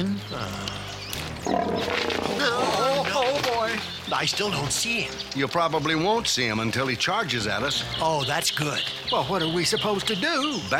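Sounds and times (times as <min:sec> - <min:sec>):
speech: 0:00.0 - 0:00.8, 0:04.1 - 0:10.7
bear growling: 0:00.4 - 0:03.1.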